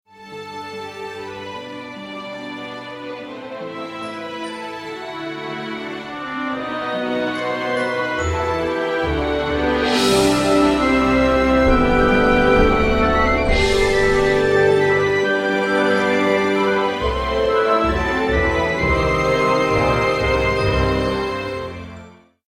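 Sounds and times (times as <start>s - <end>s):
romantic theme music: 0.1s - 22.4s.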